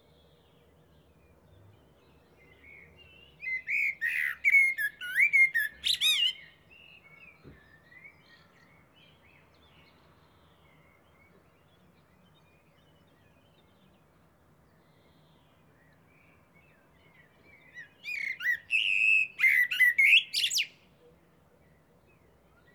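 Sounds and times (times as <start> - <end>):
Eurasian blackbird Turdus merula singing fluted warbling phrases with high squeaky notes: 0.0 - 14.0, 14.8 - 20.9.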